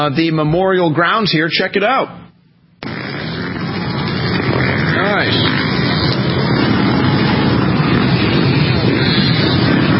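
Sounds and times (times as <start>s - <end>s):
speech: 0.0s - 2.2s
dirt bikes ATVs and four-wheelers roaring around memorial grounds in Washington, D.C.: 2.8s - 9.9s.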